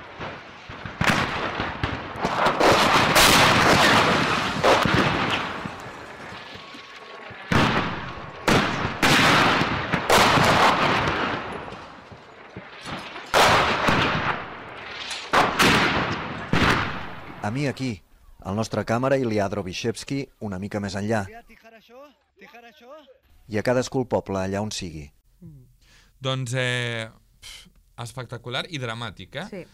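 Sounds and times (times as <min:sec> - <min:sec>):
gunshots: 0:00.0 - 0:17.6
mortar fire: 0:00.0 - 0:17.8
speech: 0:17.5 - 0:22.1, 0:22.7 - 0:25.6, 0:26.2 - 0:29.7.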